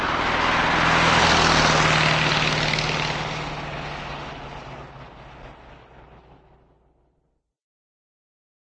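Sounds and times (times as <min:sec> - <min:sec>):
cartoon Volkswagen car starting and pulling away: 0:00.0 - 0:07.0.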